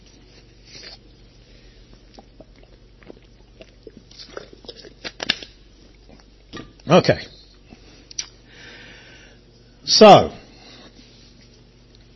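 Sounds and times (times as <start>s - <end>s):
speaker drinking water: 0.4s - 6.5s
speech: 6.9s - 7.3s, 9.9s - 10.4s.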